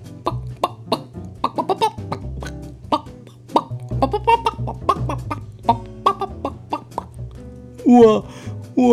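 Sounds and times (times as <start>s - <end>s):
hen clucking: 0.2s - 7.2s
speech: 7.9s - 8.9s.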